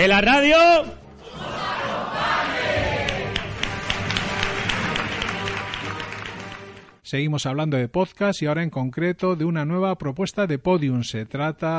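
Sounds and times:
speech: 0.0s - 1.6s, 7.1s - 11.7s
live crowd shouting a loud farewell: 1.2s - 3.5s
scattered claps and cheers: 2.6s - 7.0s.

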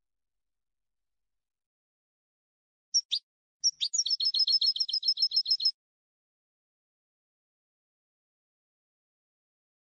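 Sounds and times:
European goldfinch song: 3.0s - 5.8s.

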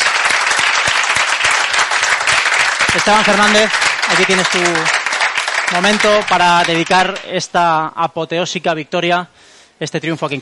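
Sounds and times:
audience applause: 0.0s - 7.4s
speech: 2.9s - 5.0s, 5.7s - 10.4s.

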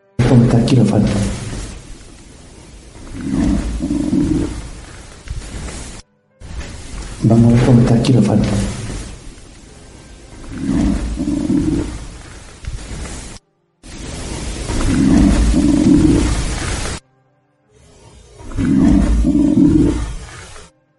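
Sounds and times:
deep growling voice talking and growling: 0.0s - 1.8s, 3.0s - 4.9s, 7.2s - 9.2s, 10.4s - 12.2s, 14.6s - 17.0s, 17.9s - 20.9s
speech: 0.3s - 1.4s, 7.3s - 8.8s.

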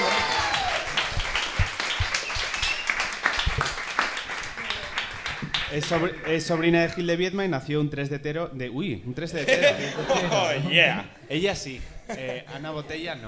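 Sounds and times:
audience applause: 0.0s - 6.8s
speech: 5.7s - 13.2s
laughter: 9.4s - 11.0s.

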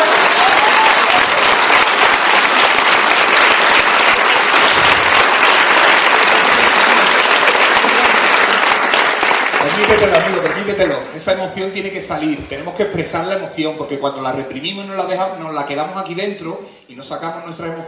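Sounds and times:
audience clapping: 0.0s - 11.7s
speech: 10.8s - 17.8s.

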